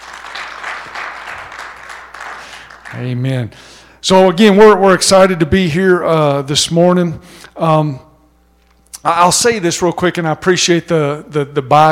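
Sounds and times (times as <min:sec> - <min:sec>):
audience applause: 0:00.0 - 0:03.2
speech: 0:02.9 - 0:08.1, 0:09.0 - 0:11.9.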